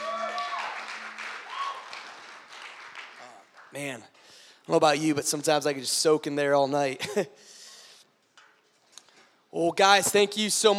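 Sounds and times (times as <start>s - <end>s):
crowd applauding: 0.0s - 4.4s
speech: 3.7s - 7.6s, 9.6s - 10.7s.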